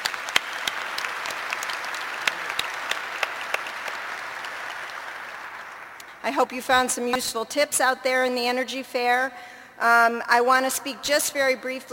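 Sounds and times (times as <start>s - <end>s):
audience round of applause: 0.0s - 6.0s
speech: 6.3s - 11.9s.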